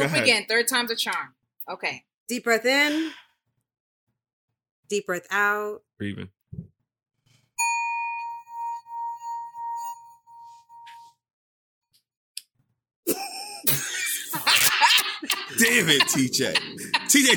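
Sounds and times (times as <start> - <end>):
speech: 0.0 - 3.2, 4.9 - 6.7, 15.6 - 17.3
singing bowl ringing: 7.6 - 11.1
laughter: 13.1 - 17.3.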